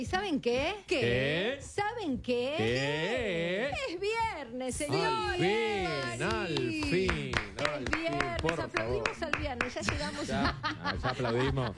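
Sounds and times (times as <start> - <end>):
speech: 0.0 - 11.7
hands clapping: 5.8 - 10.2
laughter: 7.5 - 11.7.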